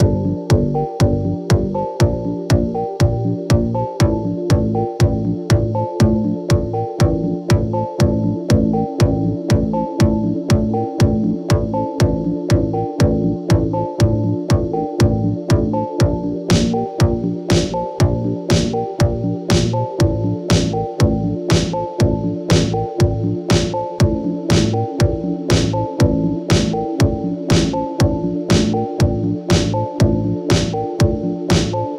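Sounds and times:
electro pop loop: 0.0s - 31.9s.

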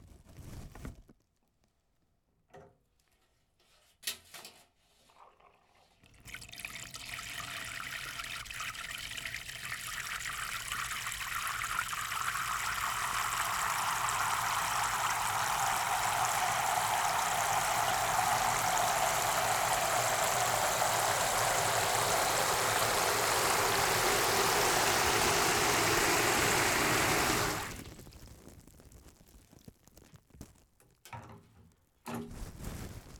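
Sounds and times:
water: 5.0s - 28.2s.

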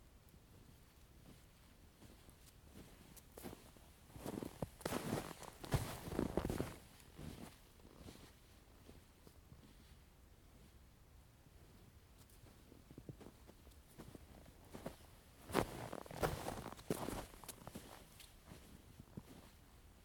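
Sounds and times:
footsteps in snow: 1.2s - 9.1s, 13.2s - 19.6s.

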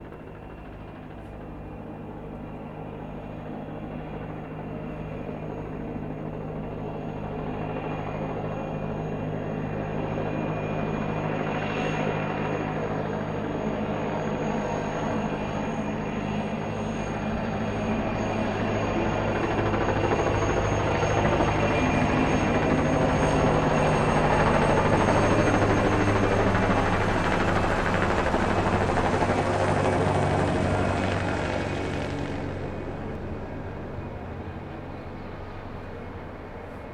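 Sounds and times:
helicopter flying low above the ground: 0.0s - 36.9s.

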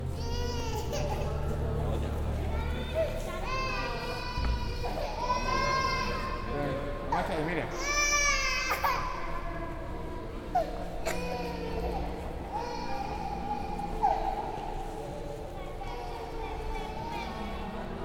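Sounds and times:
children in a hall: 0.0s - 7.1s, 7.8s - 18.0s.

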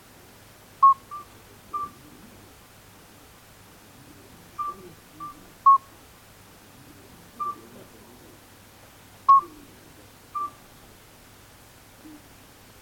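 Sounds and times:
soft background noise: 0.0s - 12.7s
midwife toad piping: 4.6s - 5.9s, 7.4s - 7.6s, 9.3s - 9.6s, 10.4s - 10.6s.

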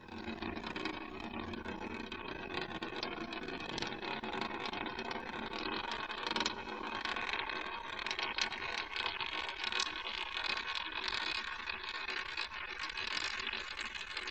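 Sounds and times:
coin rolling: 0.1s - 14.2s.

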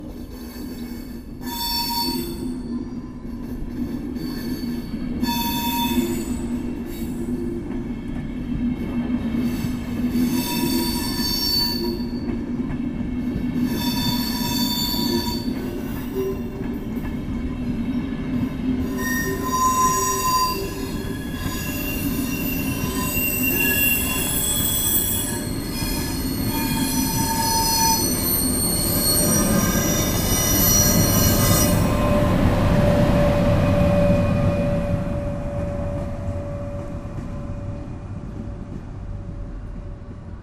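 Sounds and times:
train: 0.0s - 40.4s.

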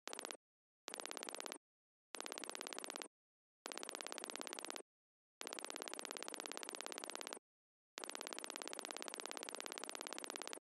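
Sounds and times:
typing: 0.1s - 1.6s, 2.2s - 3.1s, 3.7s - 4.8s, 5.4s - 7.4s, 8.0s - 10.6s.

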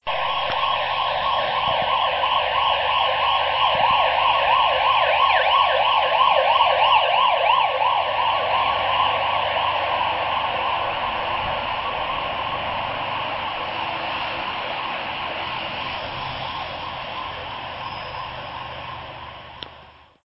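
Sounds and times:
siren wailing: 0.0s - 20.2s.

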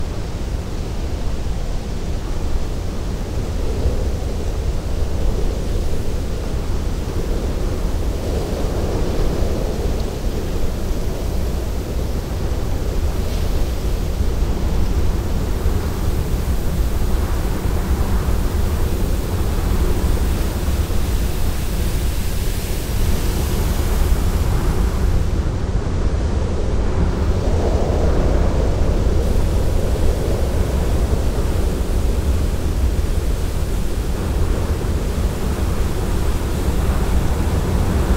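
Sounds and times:
desert wind: 0.0s - 38.1s.

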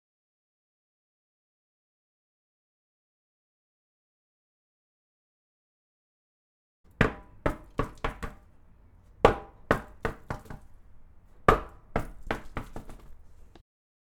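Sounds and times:
tire bouncing: 6.9s - 13.6s.

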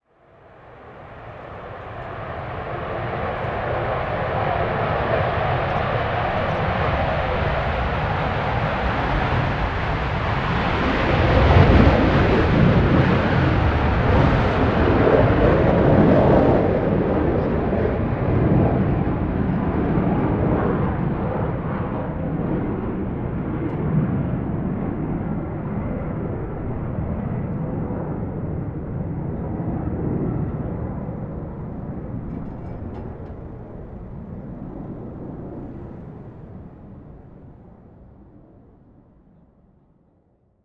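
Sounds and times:
Eurofighter jet taking off: 0.3s - 38.5s.

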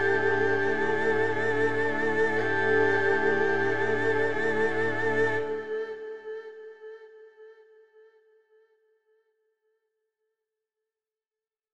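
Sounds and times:
erhu melodic loop: 0.0s - 6.5s.

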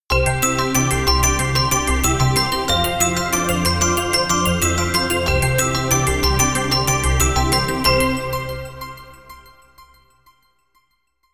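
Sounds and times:
winter music: 0.1s - 11.3s.

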